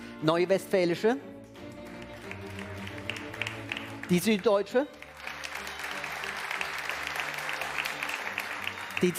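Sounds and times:
speech: 0.2s - 1.4s, 4.1s - 5.0s, 9.0s - 9.1s
audience applause: 1.8s - 9.1s.

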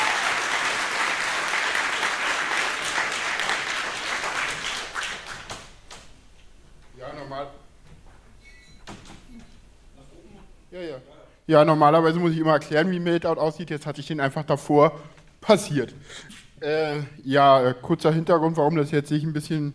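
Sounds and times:
audience applause: 0.0s - 5.8s
speech: 11.5s - 19.7s.

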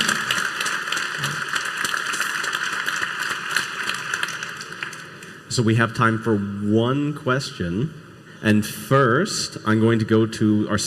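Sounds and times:
audience applause for speakers: 0.0s - 5.3s
speech: 5.6s - 10.8s.

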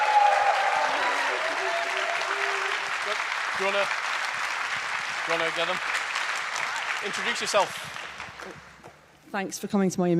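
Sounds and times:
scattered voices and cheers: 0.0s - 3.9s
crowd applauding: 0.0s - 8.8s
speech: 3.6s - 4.1s, 5.3s - 5.9s, 7.0s - 8.6s, 9.3s - 10.1s.

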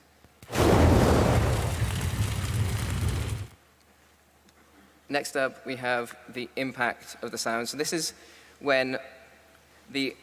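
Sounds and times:
whoosh layered from jet fighter pass and blizzard wind: 0.5s - 3.5s
speech: 5.1s - 9.2s, 9.9s - 10.2s.

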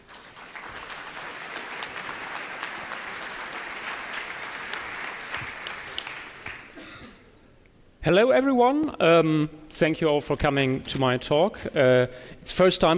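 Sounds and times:
audience applause: 0.0s - 6.8s
speech: 8.1s - 12.9s.

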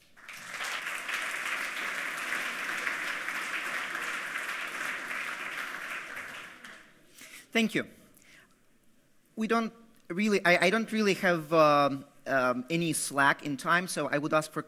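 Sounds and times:
audience applause: 0.0s - 7.0s
speech: 7.6s - 8.0s, 9.4s - 14.6s.

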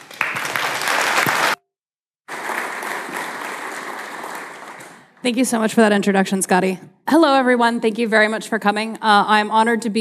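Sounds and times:
audience applause: 0.0s - 1.6s, 2.3s - 5.2s
speech: 5.2s - 9.9s.

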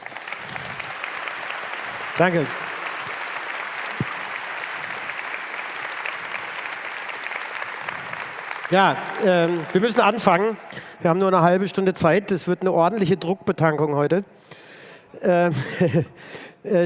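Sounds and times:
audience applause: 0.0s - 11.1s
speech: 2.2s - 2.6s, 8.7s - 14.6s, 15.2s - 16.8s.

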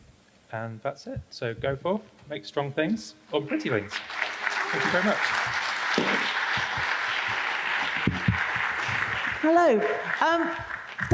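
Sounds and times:
speech: 0.5s - 5.8s, 9.4s - 11.1s
audience applause after a talk: 3.5s - 11.1s.

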